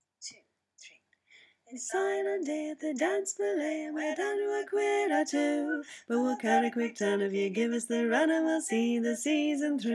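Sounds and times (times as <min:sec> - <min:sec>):
folk choir singing in harmony: 0:01.8 - 0:09.9.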